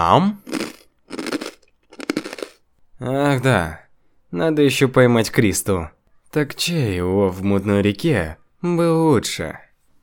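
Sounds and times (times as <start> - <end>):
speech: 0.0 - 0.4, 3.0 - 9.6
lion-shaped cookie crunching: 0.4 - 2.6.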